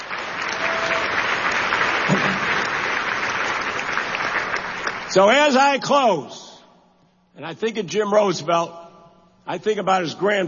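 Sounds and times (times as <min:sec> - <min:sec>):
crowd applauding: 0:00.0 - 0:05.4
speech: 0:05.2 - 0:06.5, 0:07.4 - 0:08.8, 0:09.5 - 0:10.4.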